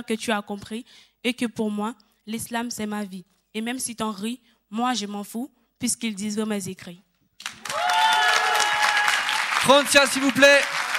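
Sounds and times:
speech: 0:00.0 - 0:07.5, 0:09.6 - 0:10.8
audience applause: 0:07.4 - 0:10.9
sustained tonal whistles or cheers: 0:07.6 - 0:09.7.

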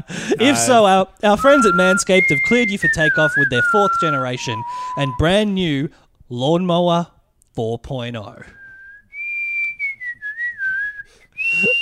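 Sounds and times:
speech: 0:00.0 - 0:08.6
person whistling space-themed music: 0:01.4 - 0:05.4, 0:08.6 - 0:11.8.

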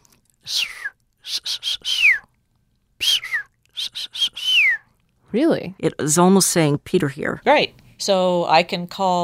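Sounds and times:
speech: 0:00.5 - 0:00.7, 0:05.3 - 0:09.2
dolphin signature whistle: 0:00.6 - 0:02.2, 0:03.0 - 0:04.9.

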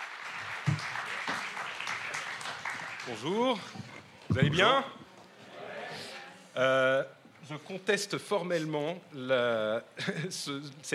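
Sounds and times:
audience applause: 0:00.0 - 0:04.0
speech: 0:03.1 - 0:05.0, 0:06.6 - 0:10.9.

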